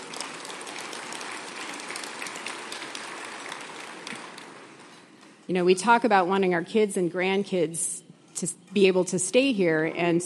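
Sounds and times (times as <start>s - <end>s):
audience applause: 0.0s - 4.9s
speech: 5.5s - 10.2s.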